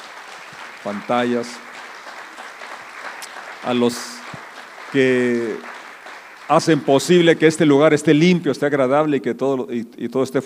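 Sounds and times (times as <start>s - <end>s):
audience applause: 0.0s - 7.7s
speech: 0.8s - 1.7s, 3.6s - 4.3s, 4.9s - 5.7s, 6.5s - 10.4s.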